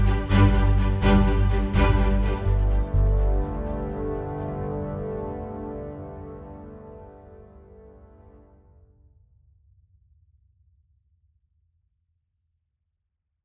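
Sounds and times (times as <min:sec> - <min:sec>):
flute melody: 0:00.0 - 0:08.5.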